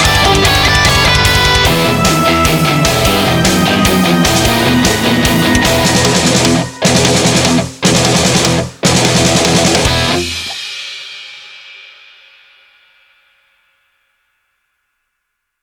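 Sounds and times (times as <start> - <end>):
brutal metal etude: 0.0 - 10.8.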